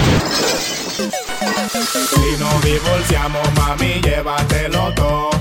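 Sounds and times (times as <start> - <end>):
television screen shattering: 0.0 - 2.4
speech: 1.7 - 5.3.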